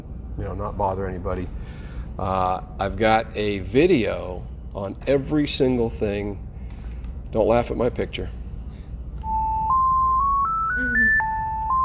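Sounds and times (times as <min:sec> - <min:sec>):
speech: 0:00.4 - 0:06.5, 0:07.3 - 0:08.4
phone ringing with a musical ringtone: 0:09.2 - 0:11.8.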